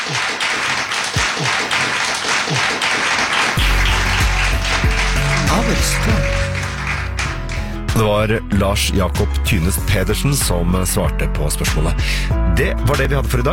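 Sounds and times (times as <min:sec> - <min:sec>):
audience applause: 0:00.0 - 0:07.9
speech: 0:00.1 - 0:00.4, 0:05.8 - 0:06.4, 0:08.0 - 0:13.5.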